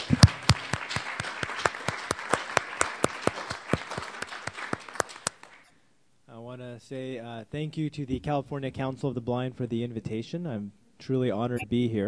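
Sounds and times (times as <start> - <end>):
audience applause welcoming a speaker at a California Council of the Blind event: 0.0 - 5.7
speech: 6.9 - 12.0.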